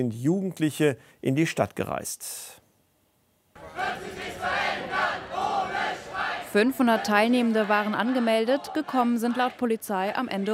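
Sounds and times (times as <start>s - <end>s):
speech: 0.0s - 2.6s, 6.5s - 10.5s
crowd of students chanting and shouting against conscription in Bonn: 3.6s - 10.5s.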